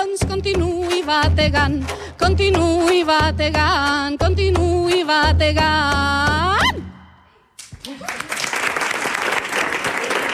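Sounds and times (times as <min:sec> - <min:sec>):
speech: 0:00.1 - 0:06.5
live audience applause: 0:07.8 - 0:10.3.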